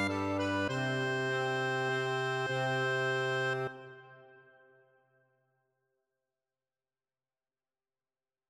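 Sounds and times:
accordion playing a nocturne: 0.0 - 4.7.

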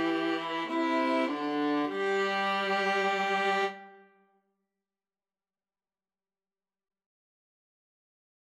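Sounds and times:
violin and viola duet: 0.0 - 4.0.

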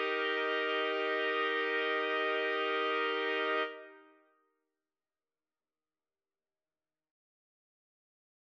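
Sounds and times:
trumpets playing: 0.0 - 4.0.

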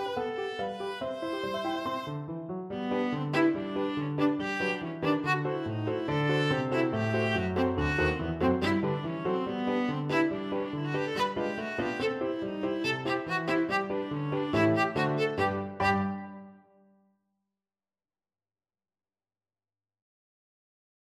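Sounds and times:
viola: 0.0 - 16.6.

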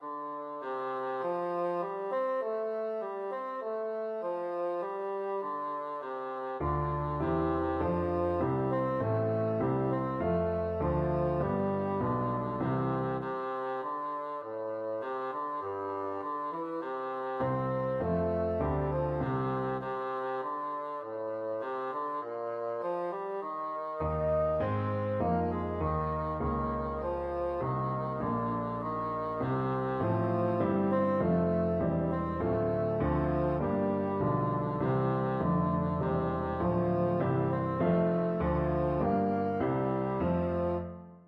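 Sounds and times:
bassoon: 0.0 - 41.2.

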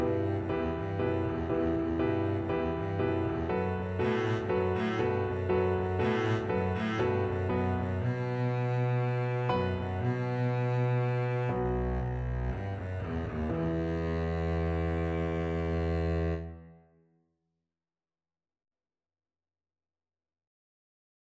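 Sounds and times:
double bass: 0.0 - 16.6.

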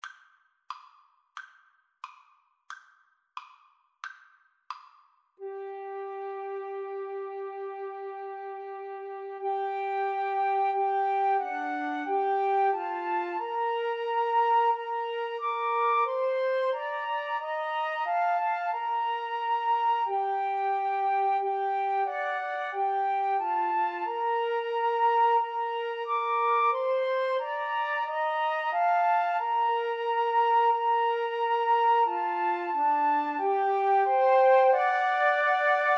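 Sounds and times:
flute trio playing: 5.4 - 35.9.

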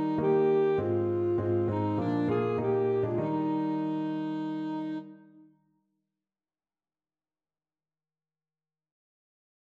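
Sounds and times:
alto saxophone: 0.0 - 5.6.

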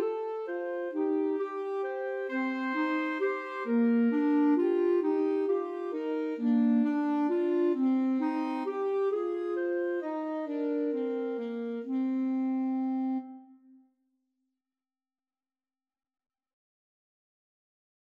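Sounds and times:
clarinet in a duet: 0.0 - 13.8
saxophone in a duet: 0.0 - 13.8.

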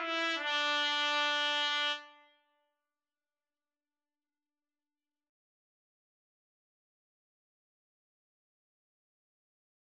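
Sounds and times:
trumpet duet with band playalong: 0.0 - 2.4.

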